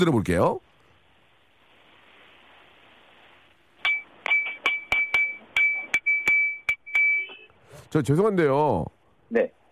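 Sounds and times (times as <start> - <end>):
speech: 0.0 - 0.7, 7.9 - 9.6
ladle tapping a drinking glass: 3.8 - 7.3.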